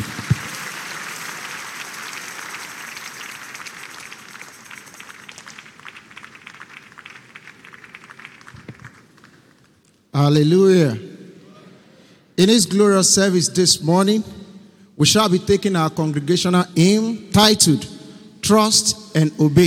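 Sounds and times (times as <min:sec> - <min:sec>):
church congregation clapping during a morning service: 0:00.0 - 0:10.1
speech: 0:10.2 - 0:11.1, 0:12.4 - 0:14.4, 0:15.0 - 0:19.6.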